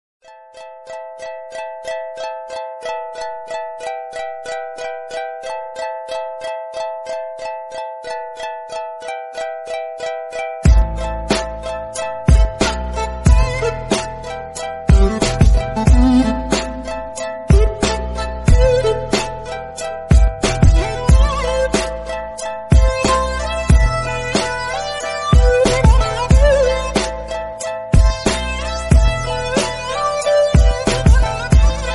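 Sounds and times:
trap instrumental: 0:10.7 - 0:31.9.

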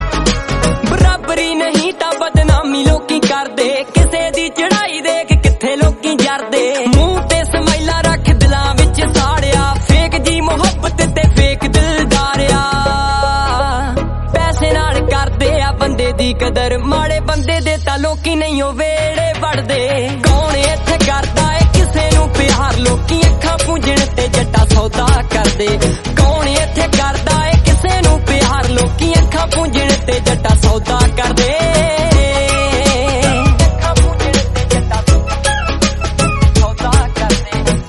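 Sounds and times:
Punjabi music: 0:00.0 - 0:37.8.

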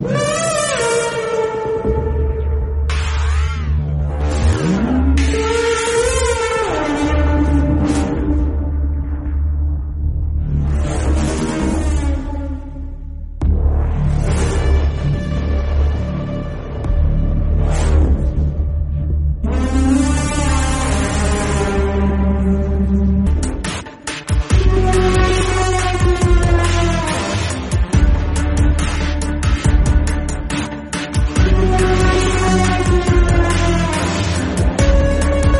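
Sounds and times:
background music: 0:00.0 - 0:35.5.

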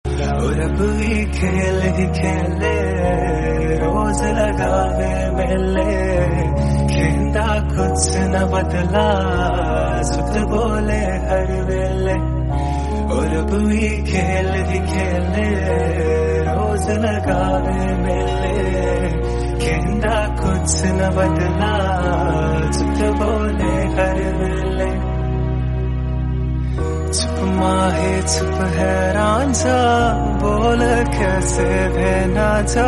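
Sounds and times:
Hindi romantic background music: 0:00.0 - 0:32.8.

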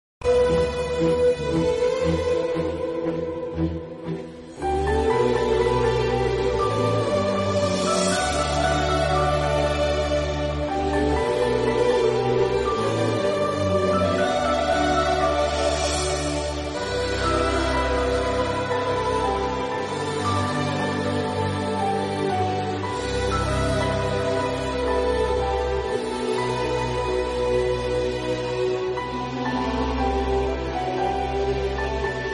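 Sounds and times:
Telugu background music: 0:00.2 - 0:32.3.

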